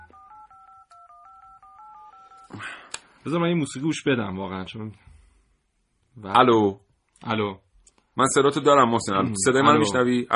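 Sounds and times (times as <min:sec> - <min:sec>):
telephone keypad dialing tones: 0:00.0 - 0:02.5
speech: 0:02.6 - 0:05.1, 0:06.2 - 0:07.6, 0:08.2 - 0:10.3.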